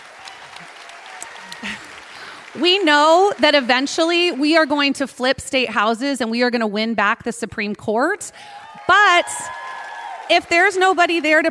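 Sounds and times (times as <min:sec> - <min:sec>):
audience applause: 0:00.0 - 0:04.7, 0:08.4 - 0:11.5
speech: 0:02.6 - 0:09.6, 0:10.3 - 0:11.5.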